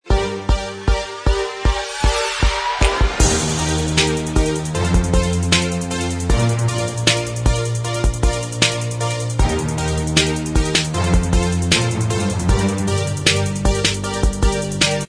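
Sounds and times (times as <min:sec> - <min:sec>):
instrumental backing track: 0:00.0 - 0:15.0.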